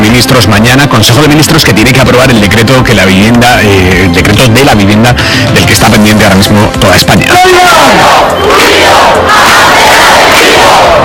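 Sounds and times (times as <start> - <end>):
speech: 0.2 - 9.8, 10.7 - 11.0
protest campers chanting in a square: 7.7 - 11.0.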